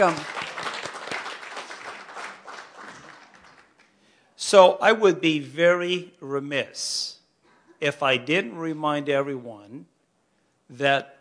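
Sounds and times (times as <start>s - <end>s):
speech: 0.0s - 0.3s, 4.5s - 7.2s, 7.8s - 9.9s, 10.7s - 11.2s
applause: 0.0s - 4.1s.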